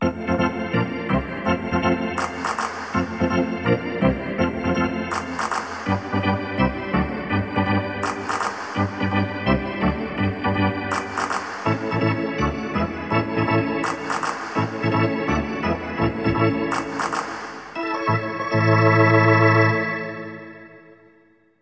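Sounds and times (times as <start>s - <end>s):
hockey arena organ: 0.0s - 21.2s.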